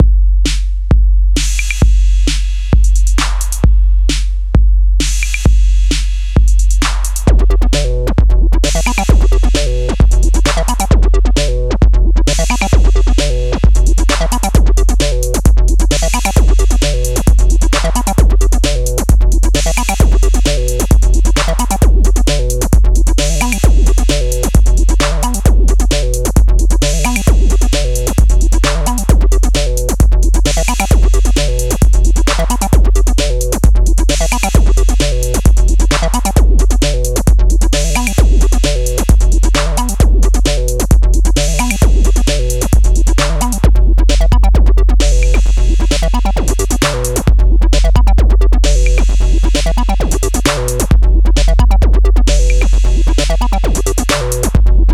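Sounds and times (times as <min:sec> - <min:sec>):
808 simulator drum machine beat: 0:00.0 - 0:54.9.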